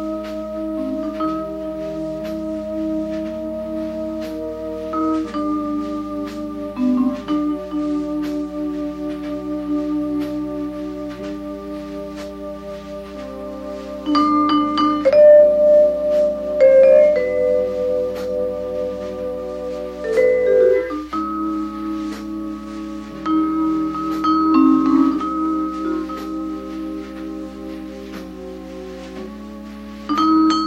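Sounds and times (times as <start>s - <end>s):
vibraphone playing: 0.0s - 10.3s, 14.0s - 27.3s, 30.1s - 30.6s.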